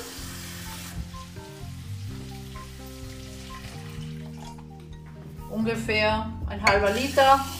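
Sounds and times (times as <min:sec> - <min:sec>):
water poured into a hot pan sizzling: 0:00.0 - 0:04.7, 0:06.8 - 0:07.5
speech: 0:05.5 - 0:07.5.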